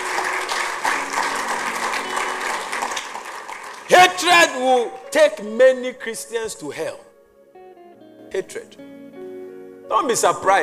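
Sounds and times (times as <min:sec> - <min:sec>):
crowd clapping: 0:00.0 - 0:05.2
speech: 0:04.0 - 0:07.1, 0:08.3 - 0:08.9, 0:09.9 - 0:10.6.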